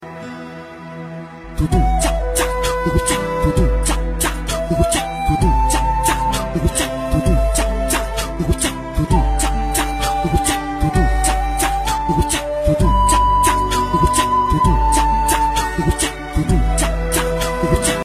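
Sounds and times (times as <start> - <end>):
sad funk music: 0.0 - 18.0.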